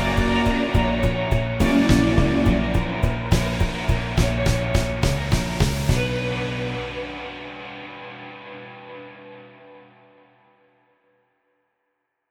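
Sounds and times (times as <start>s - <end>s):
sensual non-jazz music: 0.0s - 9.2s.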